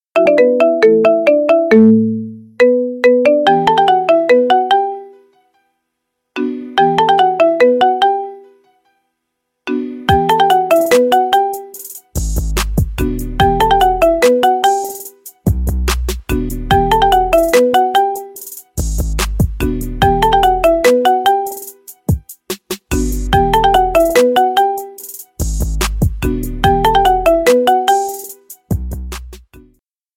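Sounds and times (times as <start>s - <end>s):
marimba remix: 0.1s - 5.2s, 6.4s - 8.5s, 9.7s - 29.7s.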